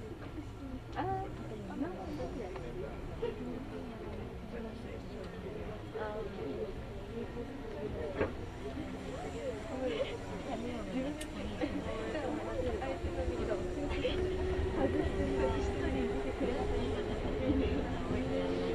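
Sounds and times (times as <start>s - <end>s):
voices chattering: 0.0s - 18.7s
Kintetsu Nagoya Line local train rumble: 7.5s - 18.7s.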